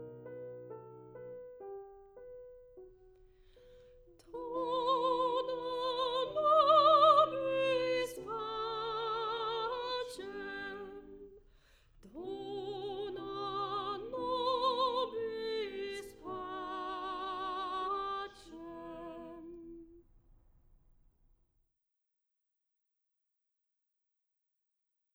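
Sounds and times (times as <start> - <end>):
soprano singing: 3.6 - 20.0.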